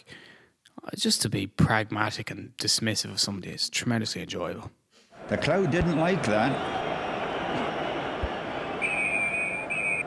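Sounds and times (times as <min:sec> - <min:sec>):
speech: 0:00.9 - 0:06.8
referee's half-time whistle: 0:05.6 - 0:10.0.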